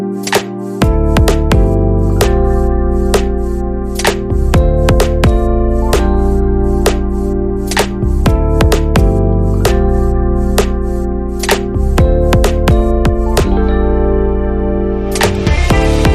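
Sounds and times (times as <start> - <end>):
electronic Latin party instrumental music: 0.1 - 16.1.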